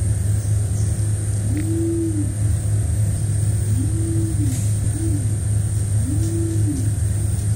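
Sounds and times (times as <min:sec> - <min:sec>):
engine-like rumble: 0:00.0 - 0:07.5
Nicobar pigeon cooing: 0:01.5 - 0:02.4, 0:03.7 - 0:05.4, 0:06.0 - 0:07.0.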